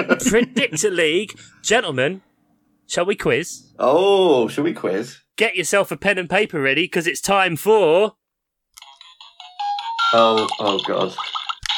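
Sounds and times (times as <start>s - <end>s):
speech: 0.0s - 2.3s, 2.9s - 8.2s, 10.1s - 11.4s
quiz segment jingle: 8.8s - 11.6s.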